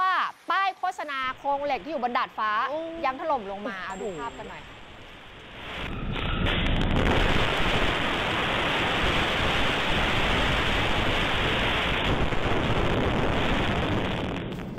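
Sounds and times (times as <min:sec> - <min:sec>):
speech: 0:01.0 - 0:04.7
strong gusting wind buffeting the microphone: 0:04.8 - 0:14.7
heavy rain: 0:04.9 - 0:14.7.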